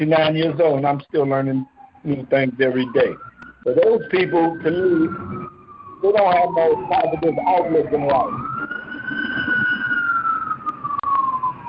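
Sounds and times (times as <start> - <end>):
speech: 0.0 - 8.5
fire truck siren wailing as the truck drives by: 0.0 - 11.6
low traffic rumble: 0.0 - 11.6.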